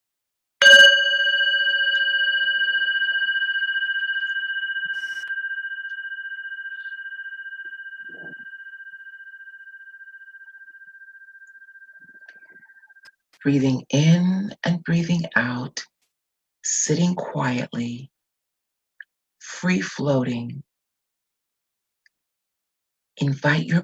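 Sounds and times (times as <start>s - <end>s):
meditation bell ringing: 0.6s - 13.1s
speech: 13.4s - 15.9s, 16.7s - 18.1s, 19.6s - 20.7s, 23.2s - 23.8s.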